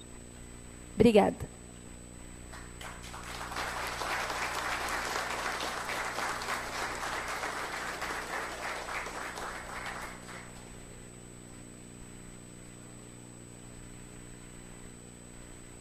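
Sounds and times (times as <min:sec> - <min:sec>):
speech: 0:01.0 - 0:01.6
audience applause: 0:02.6 - 0:10.7.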